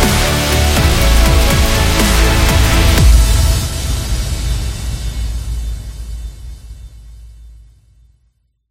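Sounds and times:
epic orchestral music: 0:00.0 - 0:05.0.

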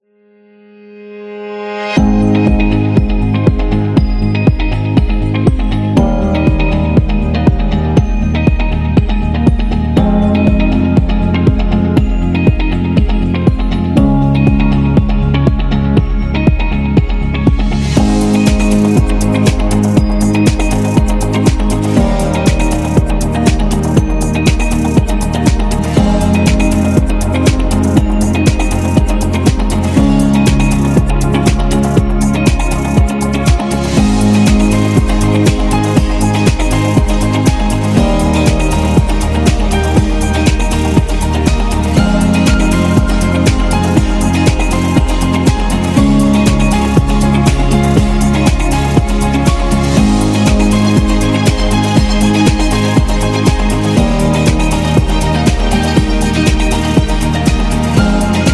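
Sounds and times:
inspiring beat: 0:01.9 - 0:58.5.

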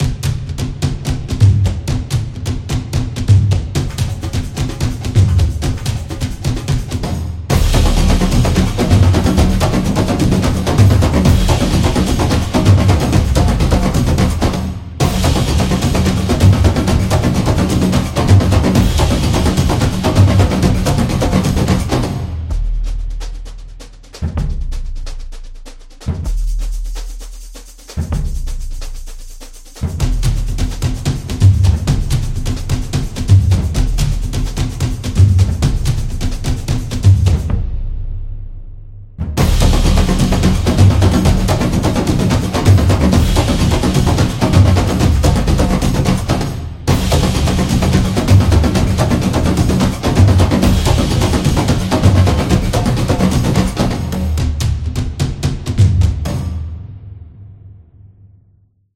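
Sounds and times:
samba drum: 0:00.0 - 0:58.0.

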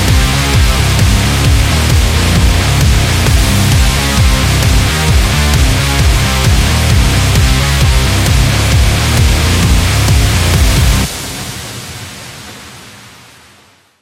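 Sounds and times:
warrior fight music: 0:00.0 - 0:11.1.

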